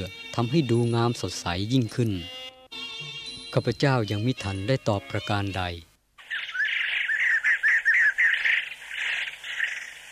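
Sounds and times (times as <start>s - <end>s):
speech: 0.0s - 2.4s, 3.6s - 5.9s
bird calling from a bush: 6.2s - 10.1s.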